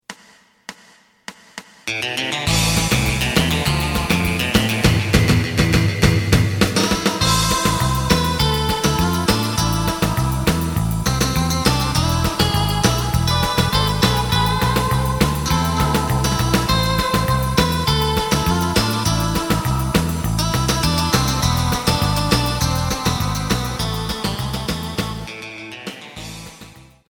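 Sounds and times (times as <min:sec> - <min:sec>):
side guitar: 0:01.9 - 0:27.0.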